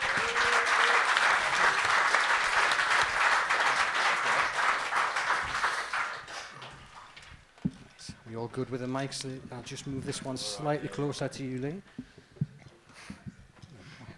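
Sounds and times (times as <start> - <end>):
audience applause: 0.0 - 7.3
speech: 8.4 - 12.1.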